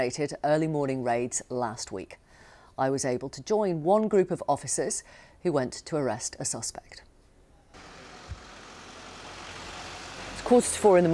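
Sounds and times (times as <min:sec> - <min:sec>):
speech: 0:00.0 - 0:02.2, 0:02.8 - 0:07.1, 0:10.4 - 0:11.1
police vehicles idling at Thames Valley Police headquarters: 0:07.8 - 0:11.1.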